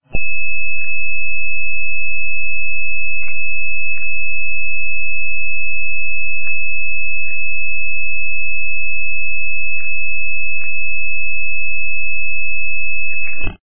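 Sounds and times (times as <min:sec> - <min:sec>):
a lot of noise: 0:00.0 - 0:13.6.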